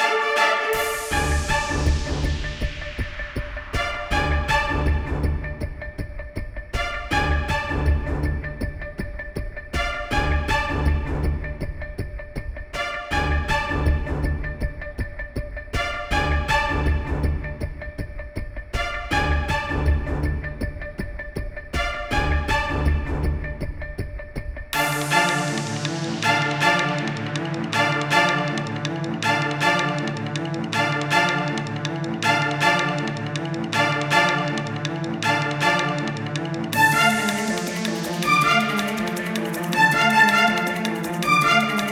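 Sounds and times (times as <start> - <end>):
tense horror music: 0.2 - 41.9.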